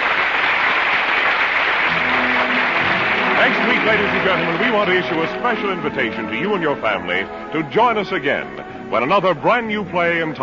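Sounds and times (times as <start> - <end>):
theater audience ovation at the end of a play off Times Square: 0.0 - 6.2
speech: 3.9 - 10.4.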